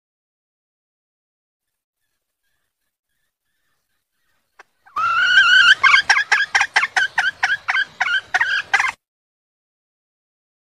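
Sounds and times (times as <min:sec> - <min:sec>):
junglefowl clucking: 0:02.0 - 0:09.0.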